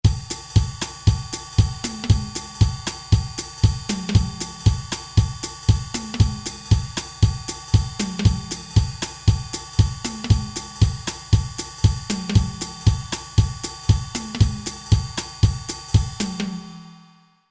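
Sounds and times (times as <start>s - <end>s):
jazz music: 0.1s - 16.7s.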